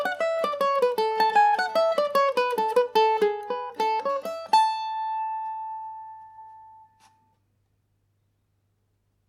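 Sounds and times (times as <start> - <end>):
Irish mandolin in A major: 0.0 - 7.2.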